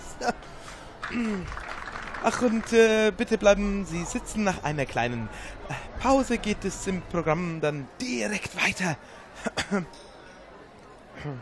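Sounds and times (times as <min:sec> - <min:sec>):
speech: 0:00.2 - 0:01.6, 0:02.2 - 0:10.0, 0:11.2 - 0:11.4
audience applause: 0:00.7 - 0:03.0.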